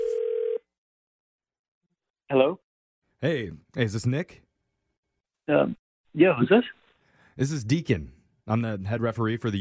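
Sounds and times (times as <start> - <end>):
telephone ringing tone on outgoing call: 0.0 - 0.7
speech: 2.3 - 2.6, 3.2 - 4.4, 5.5 - 6.8, 7.4 - 9.5.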